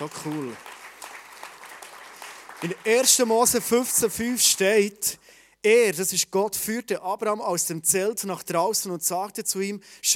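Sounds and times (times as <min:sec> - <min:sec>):
speech: 0:00.0 - 0:00.7, 0:02.6 - 0:10.1
applause: 0:00.0 - 0:04.6.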